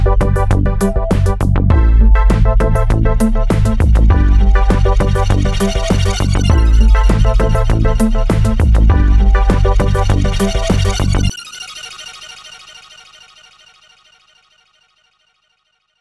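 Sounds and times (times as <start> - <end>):
bass: 0.0 - 11.3.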